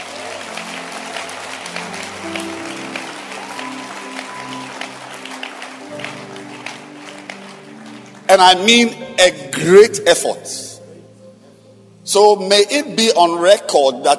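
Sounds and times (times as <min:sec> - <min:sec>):
audience clapping hands: 0:00.0 - 0:09.0
speech: 0:08.3 - 0:10.7, 0:12.1 - 0:14.1.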